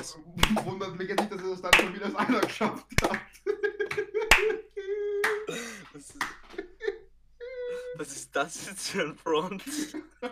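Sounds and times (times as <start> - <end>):
speech: 0.0 - 3.2, 8.4 - 10.3
hand clapping: 0.0 - 4.6, 5.2 - 6.7
laughter: 0.4 - 7.9, 8.8 - 10.3.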